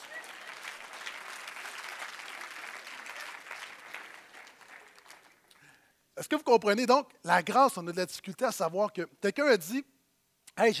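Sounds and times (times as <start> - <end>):
audience applause: 0.0 - 5.6
speech: 6.2 - 9.9, 10.6 - 10.7.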